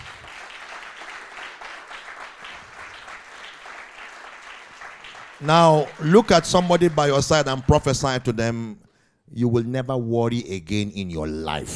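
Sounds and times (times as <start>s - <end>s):
audience clapping: 0.0s - 8.5s
speech: 5.4s - 11.7s.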